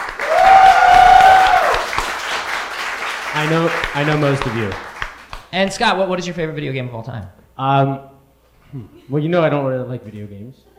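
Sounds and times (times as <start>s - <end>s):
audience applause with whoops: 0.0s - 5.3s
speech: 3.4s - 4.9s, 5.5s - 8.1s, 8.7s - 10.7s.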